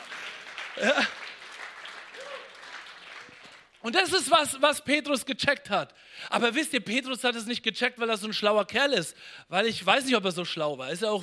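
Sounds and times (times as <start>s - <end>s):
audience clapping: 0.0s - 4.0s
speech: 0.8s - 1.2s, 3.8s - 11.2s
voice cheering: 2.1s - 2.6s.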